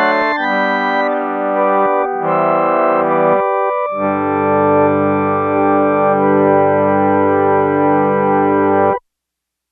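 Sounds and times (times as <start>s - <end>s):
harmonium patch on a Yamaha TX802 synthesizer: 0.0s - 9.0s.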